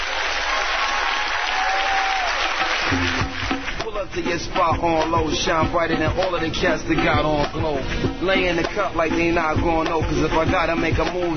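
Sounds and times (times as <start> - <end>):
cheers and whistles: 0.0 - 2.9
crowd applauding: 0.0 - 4.0
speech: 4.2 - 11.3.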